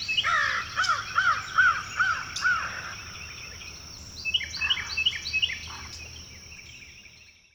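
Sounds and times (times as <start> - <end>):
crows passing overhead at dawn: 0.2 - 3.2, 5.6 - 6.0.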